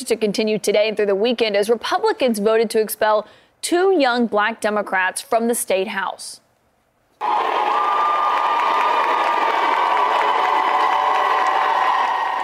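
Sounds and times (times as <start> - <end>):
speech: 0.0 - 6.4, 7.2 - 8.5
crowd of supporters cheering: 7.2 - 12.4.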